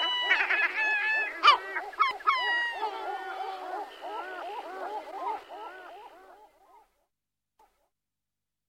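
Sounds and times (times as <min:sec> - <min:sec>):
European herring gull yelps and laughing calls: 0:00.0 - 0:06.9.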